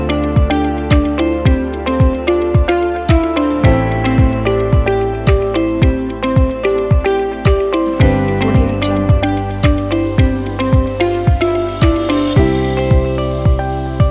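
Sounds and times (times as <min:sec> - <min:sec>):
spring commercial corporate music: 0:00.0 - 0:14.0.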